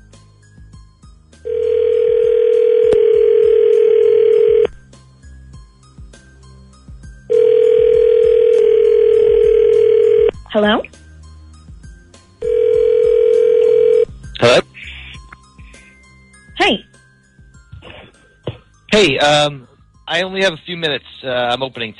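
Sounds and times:
telephone ringing: 0:01.5 - 0:04.7, 0:07.3 - 0:10.3, 0:12.4 - 0:14.1
speech: 0:19.0 - 0:19.5, 0:20.1 - 0:21.9.

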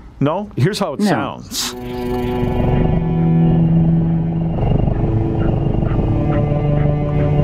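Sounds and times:
speech: 0:00.2 - 0:03.1
mellow cello music: 0:01.1 - 0:07.4
contented kitten: 0:04.6 - 0:06.0.

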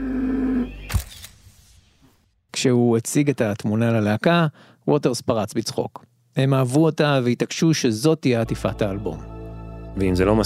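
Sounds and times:
camera shutter click: 0:00.8 - 0:01.8
speech: 0:02.6 - 0:09.3, 0:10.0 - 0:10.4.

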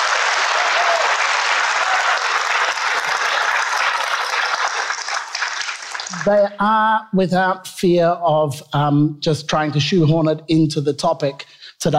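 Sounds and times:
audience clapping: 0:00.0 - 0:06.6
speech: 0:06.2 - 0:11.9.

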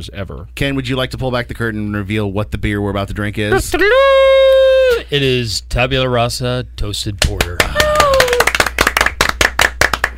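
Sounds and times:
speech: 0:00.0 - 0:04.2, 0:05.1 - 0:07.8
sparse polite golf clap from the audience at a beer festival tasting: 0:07.2 - 0:10.1.

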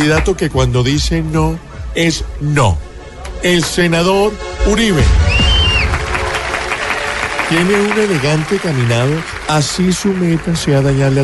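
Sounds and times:
speech: 0:00.0 - 0:05.5, 0:07.5 - 0:11.2
high whistle: 0:05.2 - 0:07.1
audience applause: 0:05.3 - 0:11.2.

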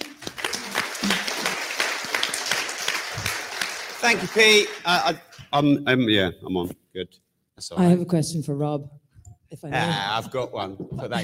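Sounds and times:
audience applause: 0:00.0 - 0:05.4
speech: 0:04.0 - 0:11.2.

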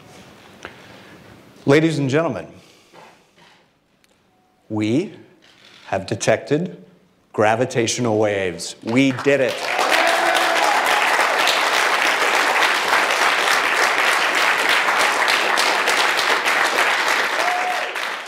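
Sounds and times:
speech: 0:01.7 - 0:02.6, 0:04.7 - 0:05.3, 0:05.9 - 0:09.8
audience applause at press conference: 0:08.9 - 0:18.2.

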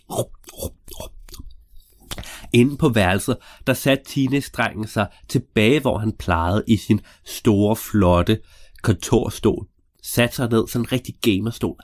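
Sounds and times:
man eating cake, chewing: 0:00.0 - 0:02.3
speech: 0:00.1 - 0:00.4, 0:02.5 - 0:11.8.

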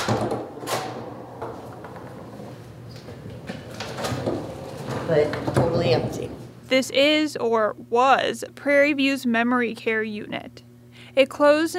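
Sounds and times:
locked door being unlocked and pushed open: 0:00.0 - 0:06.0
quiet hallway hum: 0:00.0 - 0:07.9
speech: 0:05.1 - 0:10.6, 0:11.2 - 0:11.7.

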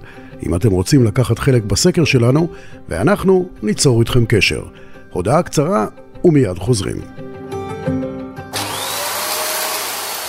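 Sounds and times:
speech: 0:00.4 - 0:07.2, 0:07.8 - 0:08.0
vacuum cleaner running: 0:08.5 - 0:10.2.

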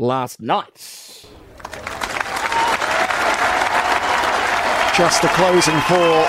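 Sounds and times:
speech: 0:00.0 - 0:01.9, 0:05.0 - 0:06.2
golf crowd rapturous applause: 0:01.3 - 0:06.2.

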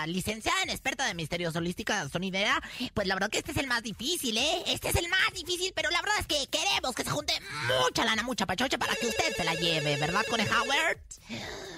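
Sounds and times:
speech: 0:00.0 - 0:11.7
telephone ringing, incoming call: 0:08.8 - 0:11.0.

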